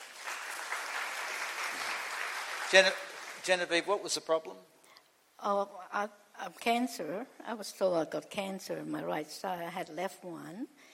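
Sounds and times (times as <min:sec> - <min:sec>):
crowd applauding: 0:00.0 - 0:03.8
speech: 0:02.7 - 0:04.8, 0:05.4 - 0:10.9.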